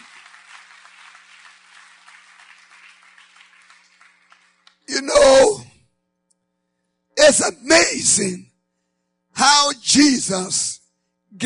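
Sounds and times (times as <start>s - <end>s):
audience clapping: 0.0s - 5.1s
speech: 7.3s - 8.5s, 9.4s - 11.4s.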